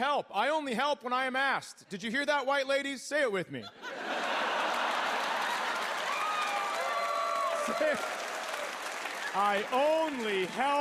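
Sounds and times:
speech: 0:00.0 - 0:04.3, 0:07.7 - 0:08.2, 0:09.3 - 0:10.7
laughter: 0:03.6 - 0:06.2, 0:07.4 - 0:08.2
clapping: 0:04.6 - 0:10.7.

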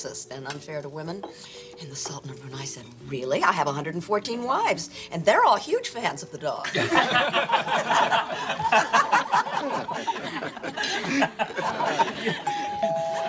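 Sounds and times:
speech: 0:00.0 - 0:12.6
laughter: 0:06.6 - 0:13.2
doorbell ringing: 0:12.4 - 0:13.2.

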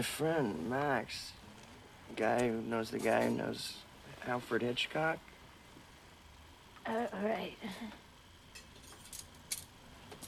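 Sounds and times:
speech: 0:00.0 - 0:01.4, 0:02.1 - 0:05.3, 0:06.9 - 0:08.0
silverware clinking as it is taken: 0:08.5 - 0:10.2.

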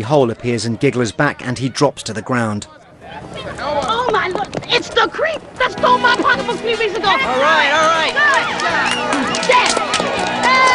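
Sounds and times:
speech: 0:00.0 - 0:03.3, 0:04.6 - 0:10.7
many overlapping excited voices: 0:00.0 - 0:10.7
video game residents cheering: 0:03.0 - 0:10.7.

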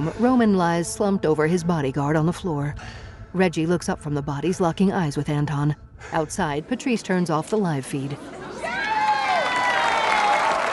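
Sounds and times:
speech: 0:00.0 - 0:08.4
audience cheering and applauding: 0:08.5 - 0:10.7.

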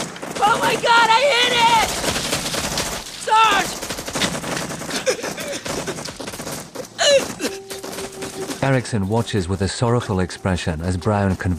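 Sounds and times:
gunfire in a firefight: 0:00.0 - 0:09.2
speech: 0:00.4 - 0:02.0, 0:08.6 - 0:11.5.

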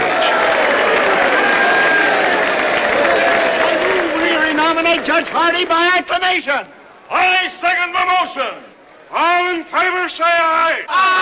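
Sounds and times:
crowd clapping: 0:00.0 - 0:06.1
large convention crowd cheering: 0:00.0 - 0:07.6, 0:10.4 - 0:11.2
speech: 0:04.9 - 0:11.2.

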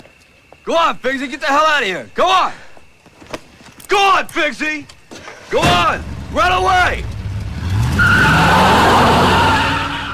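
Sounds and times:
speech: 0:00.7 - 0:02.6, 0:03.9 - 0:04.9, 0:05.5 - 0:07.1
car engine: 0:06.0 - 0:10.1
car tires skidding as the car pulls away: 0:06.0 - 0:10.1.

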